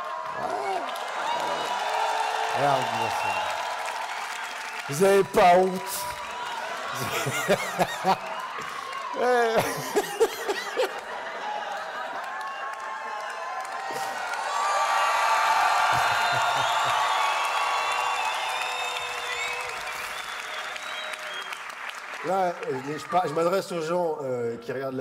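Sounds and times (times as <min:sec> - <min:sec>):
audience cheering and applauding at a comedy show: 0:00.0 - 0:23.9
speech: 0:02.6 - 0:03.6, 0:04.9 - 0:06.1, 0:07.0 - 0:11.0, 0:22.3 - 0:24.9
audience laughing at a comedy show: 0:06.9 - 0:12.4.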